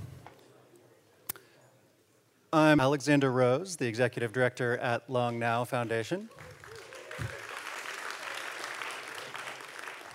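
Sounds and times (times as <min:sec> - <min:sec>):
speech: 0:02.5 - 0:06.5
audience applause: 0:06.3 - 0:10.1.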